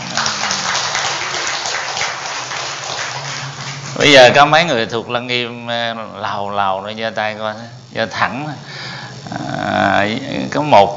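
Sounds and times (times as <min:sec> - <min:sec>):
audience applause: 0:00.0 - 0:04.5
speech: 0:04.0 - 0:10.9.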